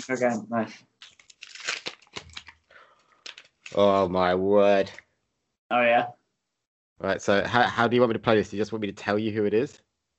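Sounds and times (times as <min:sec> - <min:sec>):
speech: 0:00.0 - 0:01.2, 0:03.7 - 0:05.0, 0:05.7 - 0:06.2, 0:07.0 - 0:09.8
tearing and crinkling of a McDonald's Pokemon card pack: 0:01.0 - 0:02.6, 0:03.2 - 0:03.9.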